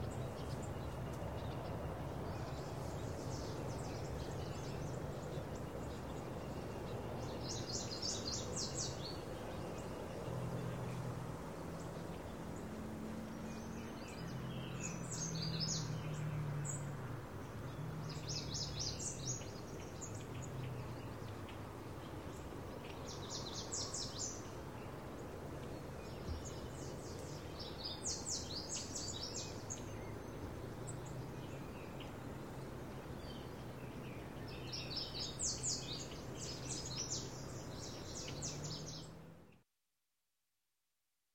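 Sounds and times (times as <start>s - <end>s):
birds in early morning country ambience: 0.0s - 39.6s.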